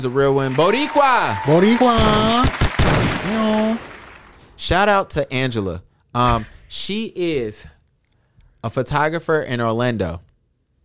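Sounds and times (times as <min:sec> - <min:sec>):
speech: 0:00.0 - 0:02.6, 0:03.3 - 0:03.9, 0:04.6 - 0:07.7, 0:08.6 - 0:10.2
sharp loud hand claps: 0:00.0 - 0:04.4.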